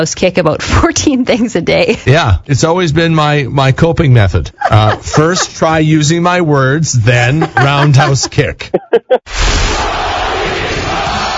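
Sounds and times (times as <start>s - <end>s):
speech: 0.0s - 9.4s
laughter: 4.5s - 5.9s, 7.2s - 9.2s
Russian crowd roaring for an American: 9.3s - 11.3s.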